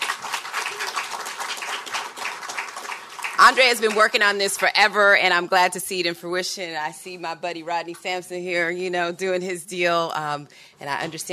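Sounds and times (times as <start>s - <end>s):
audience applause: 0.0s - 4.4s
speech: 3.4s - 11.3s.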